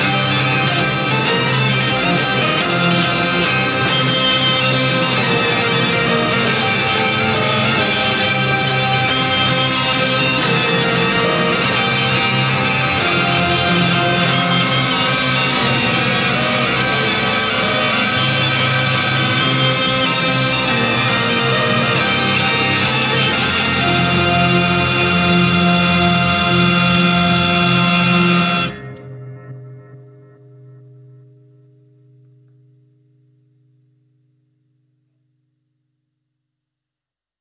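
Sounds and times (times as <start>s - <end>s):
mazurka music: 0.0s - 30.2s.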